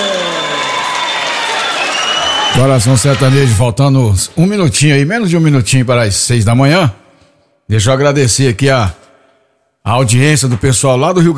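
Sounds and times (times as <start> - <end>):
audience applause: 0.0 - 3.0
speech: 2.6 - 7.0, 7.7 - 9.0, 9.8 - 11.3.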